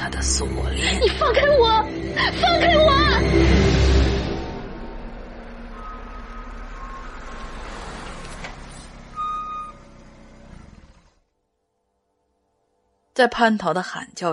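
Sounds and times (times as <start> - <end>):
speech: 0.2 - 3.6, 13.2 - 14.3
car driving into a courtyard: 0.2 - 11.4.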